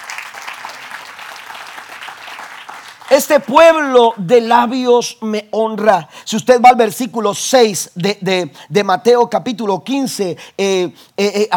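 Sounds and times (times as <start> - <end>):
audience applause: 0.0 - 3.6
speech: 3.1 - 11.5.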